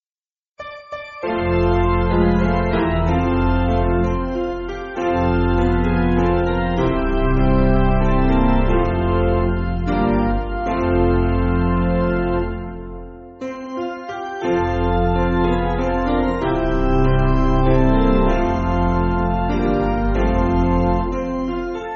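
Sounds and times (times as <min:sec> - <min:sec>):
church piano backing: 0:00.6 - 0:21.9.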